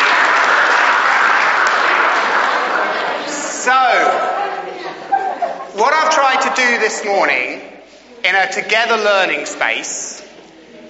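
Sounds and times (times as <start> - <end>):
audience applause: 0.0 - 4.2
laughter: 0.0 - 6.2
speech: 6.6 - 10.3.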